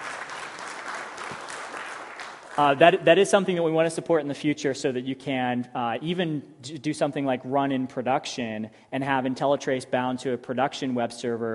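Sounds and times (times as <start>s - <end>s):
audience applause during a software presentation: 0.0s - 2.8s
speech: 2.6s - 11.5s.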